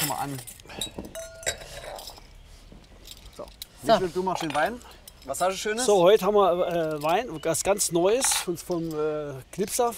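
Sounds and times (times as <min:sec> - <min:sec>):
speech: 0:00.1 - 0:01.4, 0:03.4 - 0:09.9
wine glasses clinking while being dried: 0:00.7 - 0:02.2, 0:04.3 - 0:09.0.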